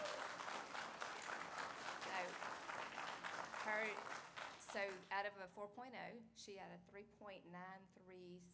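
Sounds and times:
audience applause: 0.0 - 5.0
speech: 3.7 - 8.5.

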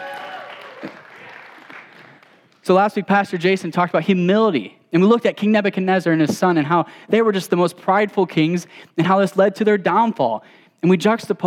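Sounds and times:
audience clapping: 0.0 - 2.6
speech: 0.8 - 1.0, 2.6 - 11.4.

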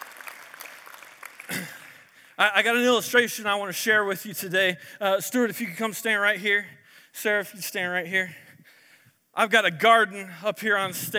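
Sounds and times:
audience applause: 0.0 - 2.1
speech: 2.4 - 8.4, 9.4 - 11.1.

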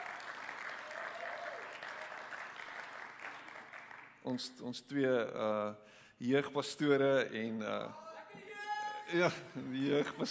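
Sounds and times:
faint voice or cheer: 0.0 - 2.3
sustained audience applause: 0.0 - 4.2
speech: 4.2 - 8.5, 9.1 - 10.2.

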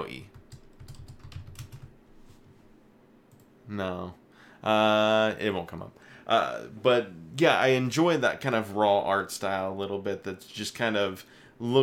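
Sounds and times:
speech: 0.0 - 0.4, 3.7 - 11.8
typing on a computer keyboard: 0.3 - 1.9.

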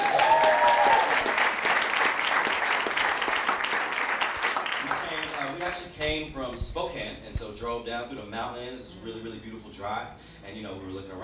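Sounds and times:
whistle or cheer: 0.0 - 1.2
audience applause: 0.0 - 5.7
speech: 7.2 - 11.2.

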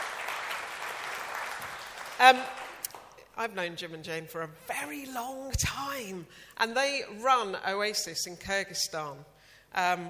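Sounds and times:
audience applause: 0.0 - 2.8
speech: 2.2 - 2.6, 3.4 - 10.0.

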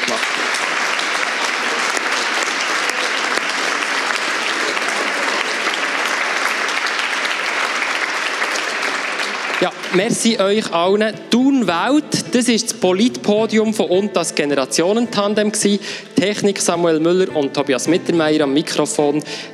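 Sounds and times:
audience applause: 0.0 - 10.7
speech: 9.9 - 19.5.

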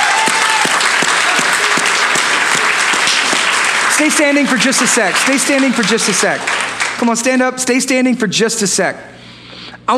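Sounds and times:
audience applause: 0.0 - 7.2
speech: 4.0 - 9.2.

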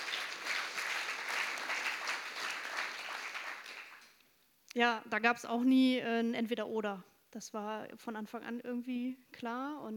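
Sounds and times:
small group applauding: 0.0 - 4.2
speech: 4.8 - 9.9.

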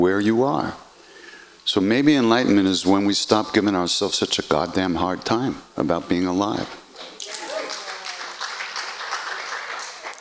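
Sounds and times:
speech: 0.0 - 0.8, 1.7 - 6.8
audience applause: 7.2 - 10.2.

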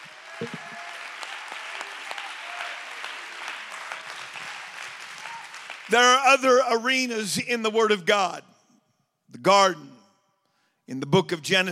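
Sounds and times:
audience clapping hands: 0.0 - 6.5
speech: 0.4 - 0.6, 5.9 - 8.5, 9.3 - 9.9, 10.9 - 11.6.

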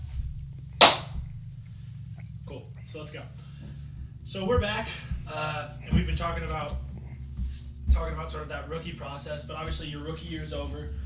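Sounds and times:
hand clap for recording sync: 0.8 - 1.2
speech: 2.5 - 6.8, 7.9 - 11.0.

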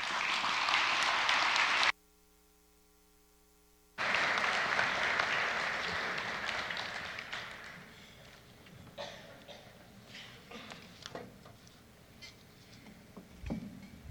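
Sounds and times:
audience applause welcoming guests on stage: 0.0 - 2.0, 4.0 - 8.5.

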